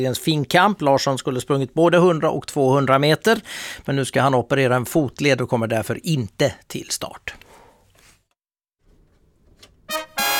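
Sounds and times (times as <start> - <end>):
speech: 0.0 - 7.4
urgent traffic alert horn signal: 9.9 - 10.3.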